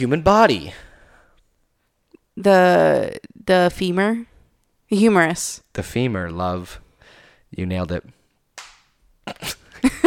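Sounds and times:
speech: 0.0s - 0.9s, 2.4s - 4.3s, 4.9s - 6.8s, 7.5s - 8.2s
hand slapping a leg: 8.5s - 9.6s.

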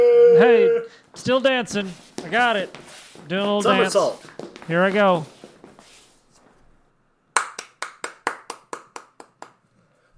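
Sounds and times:
speech: 0.4s - 5.4s
hand clap: 7.4s - 9.6s.

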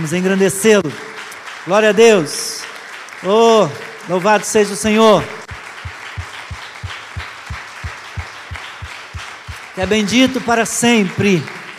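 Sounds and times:
speech: 0.0s - 2.4s, 3.2s - 5.4s, 9.8s - 11.6s
audience applauding: 0.8s - 11.7s
rhythmic thumping beat: 4.8s - 10.5s.

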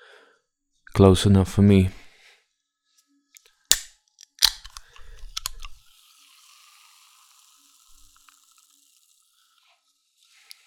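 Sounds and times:
speech: 1.0s - 2.0s
drink can being opened: 3.7s - 5.8s, 6.5s - 9.2s
lightly sparkling drink fizzing: 5.0s - 10.6s.

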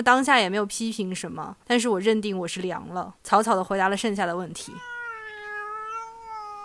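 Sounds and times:
speech: 0.0s - 4.9s
cat meowing for attention: 4.6s - 6.6s.

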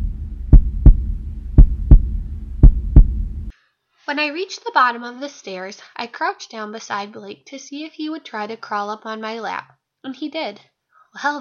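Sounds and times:
heart thudding heartbeat effect: 0.0s - 3.5s
speech: 4.1s - 11.3s.

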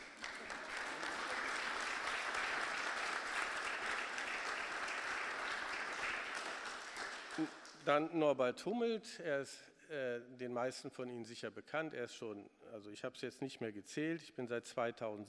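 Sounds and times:
audience applause: 0.0s - 7.8s
speech: 7.4s - 15.2s.

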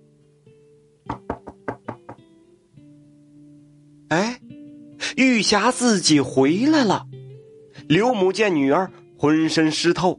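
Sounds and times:
knocking on a door: 1.1s - 2.3s
speech: 5.2s - 7.1s, 7.9s - 10.1s.

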